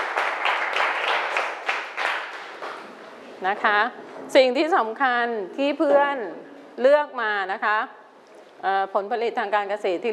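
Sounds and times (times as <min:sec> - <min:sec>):
students applauding in a classroom: 0:00.0 - 0:02.8
speech: 0:03.4 - 0:08.0, 0:08.6 - 0:10.1.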